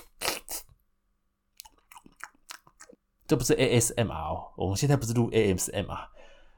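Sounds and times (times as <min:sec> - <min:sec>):
loud chewing of braised snacks: 0:01.6 - 0:03.0
speech: 0:03.3 - 0:06.2.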